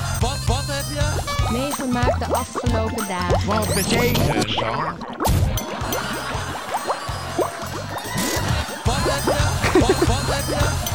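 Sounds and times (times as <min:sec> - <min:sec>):
speech: 0:00.9 - 0:05.4, 0:08.9 - 0:10.9
bubbling water: 0:01.4 - 0:10.8
laughter: 0:05.6 - 0:10.9.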